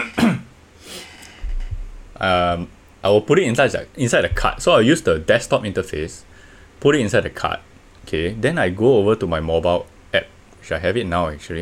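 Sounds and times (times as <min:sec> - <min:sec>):
sneeze: 0:00.0 - 0:00.5
speech: 0:02.2 - 0:11.6.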